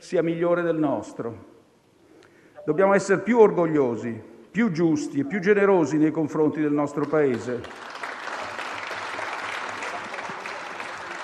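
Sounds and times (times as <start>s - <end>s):
speech: 0.0s - 1.6s, 2.6s - 7.9s
audience applause: 7.2s - 11.2s.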